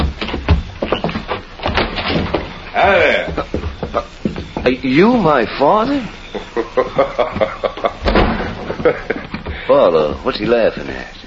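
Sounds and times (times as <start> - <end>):
door being opened with rattling and clattering: 0.0 - 3.0, 7.4 - 10.3
laughter: 2.8 - 4.4, 6.1 - 10.2
speech: 4.7 - 8.0, 8.8 - 9.1, 9.7 - 11.2.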